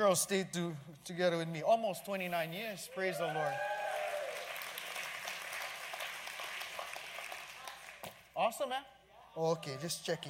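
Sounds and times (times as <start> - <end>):
speech: 0.0 - 3.8, 8.4 - 10.2
audience cheering and clapping: 2.9 - 8.0.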